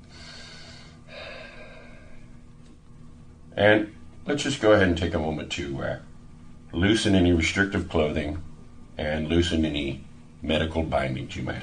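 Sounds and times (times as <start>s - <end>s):
deep breathing in through the nose and out through the mouth: 0.0s - 2.5s
speech: 3.6s - 6.1s, 6.7s - 11.6s.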